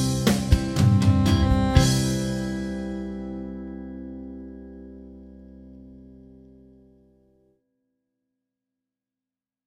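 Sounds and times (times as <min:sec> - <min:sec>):
harp: 0:00.0 - 0:06.1.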